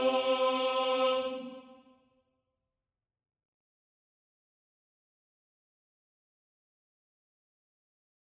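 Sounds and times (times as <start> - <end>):
tenor singing: 0.0 - 1.8.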